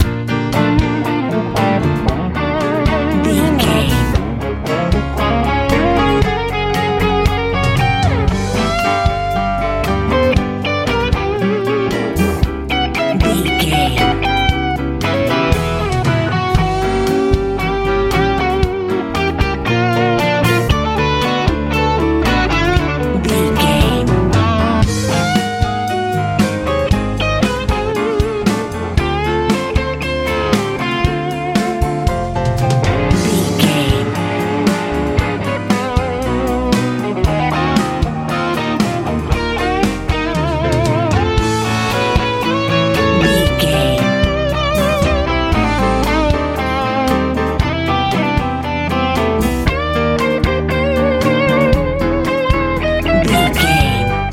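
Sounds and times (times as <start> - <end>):
fast colorful easy rock music: 0.0 - 54.3.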